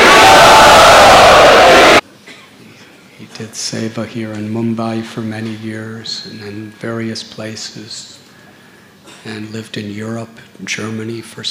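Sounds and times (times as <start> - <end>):
large crowd chanting at a devotional gathering: 0.0 - 2.0
speech: 3.4 - 8.2, 9.2 - 11.4.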